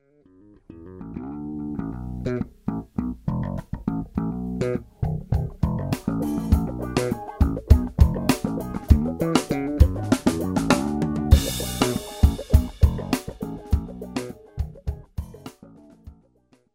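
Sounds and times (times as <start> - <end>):
bass: 0.0 - 16.6.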